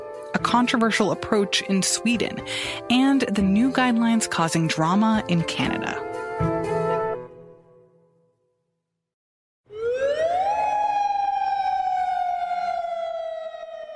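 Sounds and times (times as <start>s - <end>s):
speech: 0.3s - 6.5s
curfew air-raid alarm sirens wailing: 9.7s - 13.9s.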